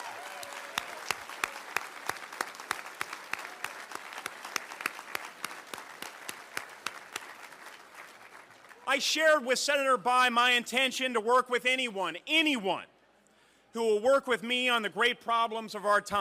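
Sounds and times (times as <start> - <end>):
audience round of applause: 0.0 - 9.0
speech: 8.9 - 12.9, 13.8 - 16.1.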